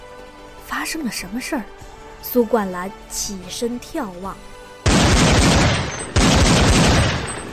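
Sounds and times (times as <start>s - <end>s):
speech: 0.8s - 4.5s
distant rifle gunshots: 4.8s - 7.5s.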